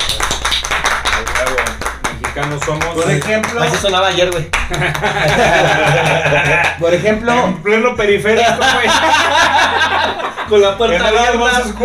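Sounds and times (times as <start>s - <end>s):
hand clapping applause: 0.0s - 6.8s
speech: 2.4s - 11.8s
laughter: 4.6s - 7.1s, 8.3s - 11.8s.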